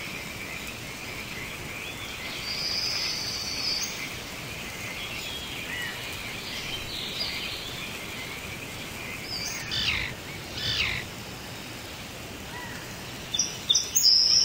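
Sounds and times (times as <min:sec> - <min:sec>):
tropical rainforest rain: 0:00.0 - 0:14.4.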